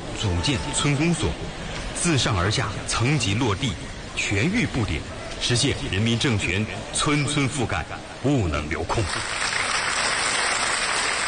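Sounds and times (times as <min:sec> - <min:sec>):
speech: 0:00.2 - 0:09.5
warm applause in a meeting hall in Antu: 0:09.0 - 0:11.2.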